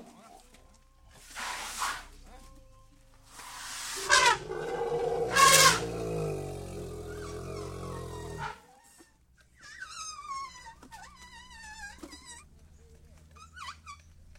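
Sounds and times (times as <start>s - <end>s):
Asian elephant giving loud rough calls in Thailand: 3.8s - 8.6s.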